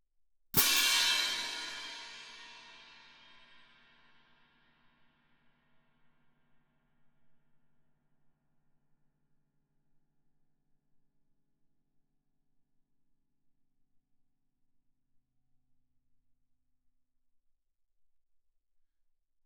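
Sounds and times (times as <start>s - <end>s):
fortissimo Germanic orchestral crash cymbals: 0.6s - 3.9s.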